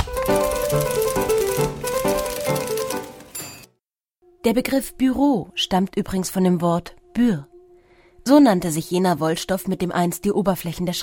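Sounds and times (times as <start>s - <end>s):
early twentieth-century office typewriter typing: 0.0s - 3.7s
speech: 4.5s - 7.5s, 8.2s - 11.0s.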